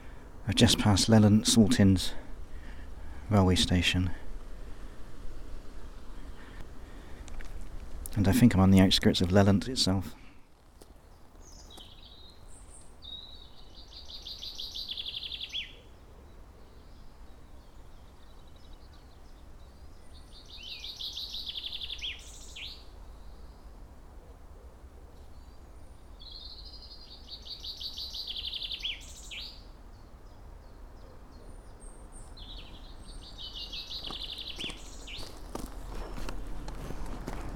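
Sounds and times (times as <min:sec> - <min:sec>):
speech: 0:00.5 - 0:02.2, 0:03.3 - 0:04.2, 0:08.2 - 0:10.2
chaffinch singing: 0:11.2 - 0:15.8, 0:17.6 - 0:22.9, 0:26.2 - 0:37.5.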